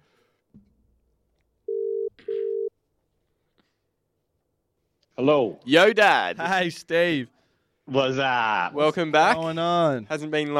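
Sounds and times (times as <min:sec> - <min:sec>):
telephone ringback tone: 0:01.7 - 0:02.7
speech: 0:05.2 - 0:10.5.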